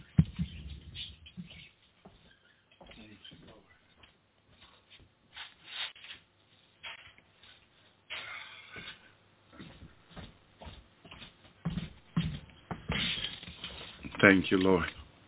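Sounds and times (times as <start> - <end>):
pet birds chirping: 0.0 - 4.0
rustling and shuffling: 0.0 - 15.2
speech: 14.2 - 15.0.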